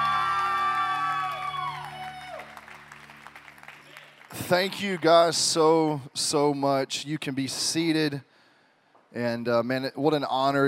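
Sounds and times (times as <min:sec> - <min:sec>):
audience clapping and cheering: 0:00.0 - 0:05.5
speech: 0:04.5 - 0:08.3, 0:09.1 - 0:10.6.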